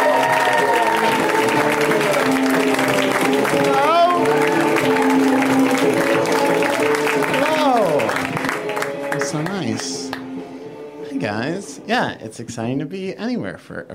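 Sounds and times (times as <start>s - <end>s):
applause: 0.0s - 10.2s
speech: 11.9s - 13.9s.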